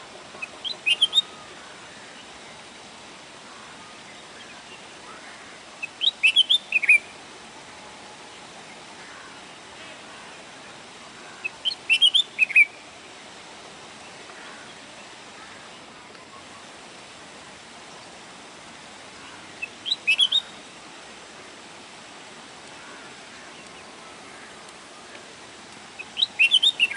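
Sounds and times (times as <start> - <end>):
bulbul song: 0.4 - 1.4, 5.8 - 7.2, 11.4 - 12.8, 19.6 - 20.6, 26.0 - 26.9.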